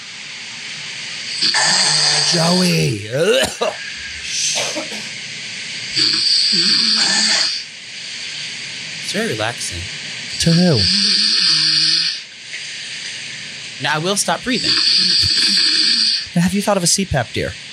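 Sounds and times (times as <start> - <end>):
person imitating loud snoring: 1.4 - 3.7, 6.0 - 7.6, 10.4 - 12.2, 14.4 - 16.2
speech: 1.7 - 5.1, 6.0 - 7.4, 9.1 - 11.3, 13.8 - 15.7, 16.4 - 17.7.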